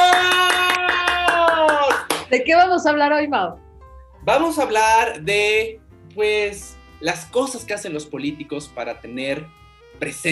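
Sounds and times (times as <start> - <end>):
clapping: 0.0 - 2.3
speech: 2.3 - 3.6, 4.2 - 10.3.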